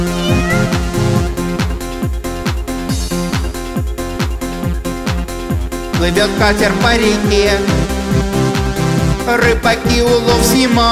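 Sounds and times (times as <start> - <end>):
stray cat meowing: 0.0 - 1.3
bass-heavy rhythmic music backing: 0.0 - 10.9
speech: 6.0 - 7.9, 9.3 - 10.9.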